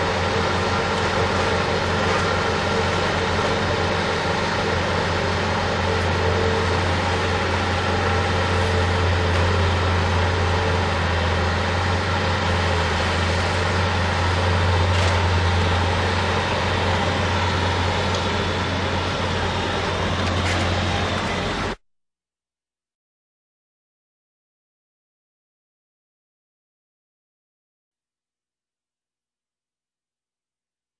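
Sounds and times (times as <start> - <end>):
bucket tractor working steadily on demolition: 0.0 - 21.8.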